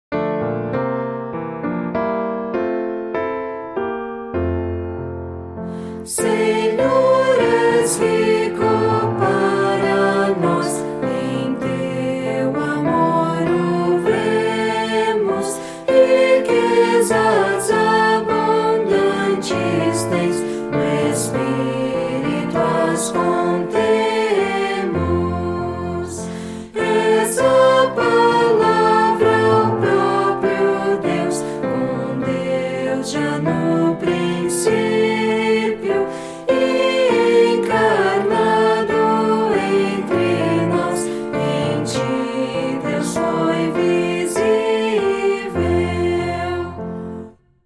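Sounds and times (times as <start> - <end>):
piano: 0.0 - 47.6
person singing: 5.9 - 47.1.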